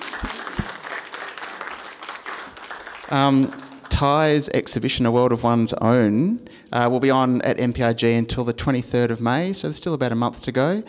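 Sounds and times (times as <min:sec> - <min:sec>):
audience applause: 0:00.0 - 0:04.1
speech: 0:03.1 - 0:10.8.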